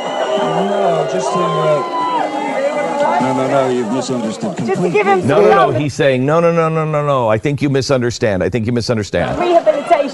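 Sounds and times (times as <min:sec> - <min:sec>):
crowd booing: 0:00.0 - 0:05.9
crowd cheering: 0:00.0 - 0:05.9, 0:09.3 - 0:10.1
speech: 0:00.4 - 0:09.8.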